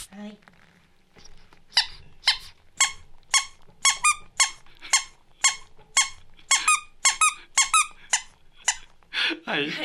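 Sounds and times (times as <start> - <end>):
CPR training kit squeaky chirping beeps keeping a chest-compression rhythm: 1.8 - 8.8
speech: 9.5 - 9.8.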